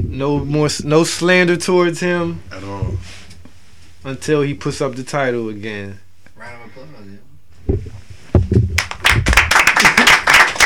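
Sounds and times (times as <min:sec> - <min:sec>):
speech: 0:00.0 - 0:03.2, 0:04.0 - 0:08.0
round of applause: 0:08.8 - 0:10.6.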